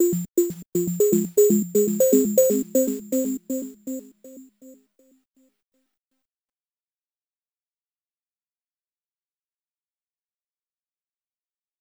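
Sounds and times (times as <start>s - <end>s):
overlay tone: 0.0s - 4.4s.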